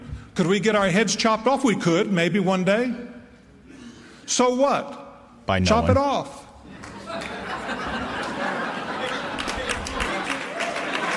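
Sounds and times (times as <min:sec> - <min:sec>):
speech: 0:00.4 - 0:03.1, 0:04.3 - 0:06.4
people chuckling: 0:06.9 - 0:10.4.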